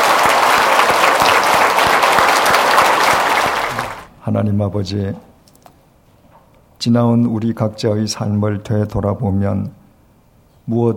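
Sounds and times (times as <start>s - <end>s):
applause: 0.0s - 4.1s
speech: 4.3s - 5.3s, 6.8s - 9.8s, 10.7s - 10.9s.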